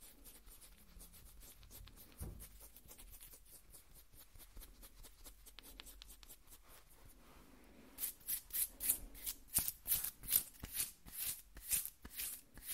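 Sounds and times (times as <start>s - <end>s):
skin scratching: 0.0s - 7.2s, 8.0s - 12.7s
brief thump: 2.2s - 2.4s.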